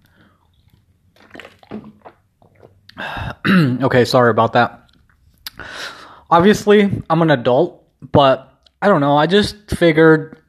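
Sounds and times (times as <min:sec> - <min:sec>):
person drinking water, gulping and swallowing: 0:00.0 - 0:03.8
speech: 0:03.0 - 0:04.8, 0:06.3 - 0:10.4.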